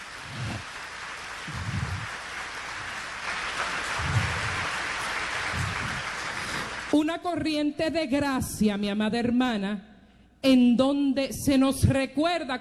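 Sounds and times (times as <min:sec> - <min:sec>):
audience applause: 0:00.0 - 0:06.9
speech: 0:07.0 - 0:12.6.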